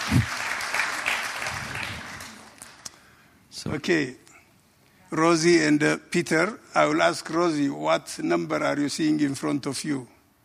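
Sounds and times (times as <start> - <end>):
crowd applauding: 0.0 - 2.9
speech: 0.1 - 0.4, 3.6 - 4.2, 5.1 - 10.2.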